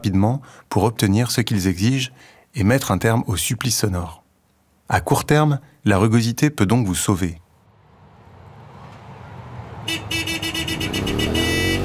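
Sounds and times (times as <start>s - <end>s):
speech: 0.0s - 4.2s, 4.9s - 7.4s
dense city traffic: 7.6s - 11.8s
motorcycle speeding past with screaming engine: 7.8s - 11.8s
car horns: 9.8s - 11.8s.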